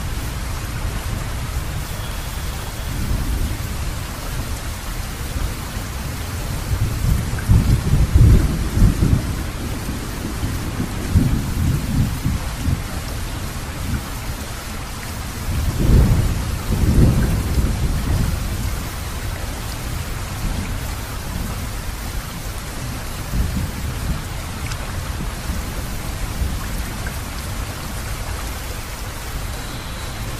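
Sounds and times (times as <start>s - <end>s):
rain recorded binaurally: 0.0s - 30.3s.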